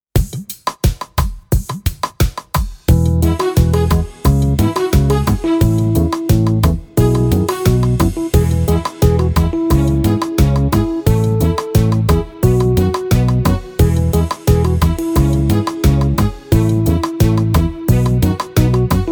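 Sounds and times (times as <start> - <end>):
instrumental music: 0.2 - 19.0.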